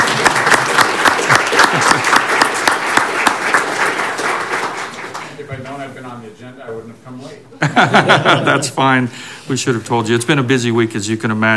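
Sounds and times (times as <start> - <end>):
laughter: 0.0 - 2.8, 7.6 - 9.0
audience applause for mayor-elect: 0.0 - 5.4
speech: 6.9 - 11.5.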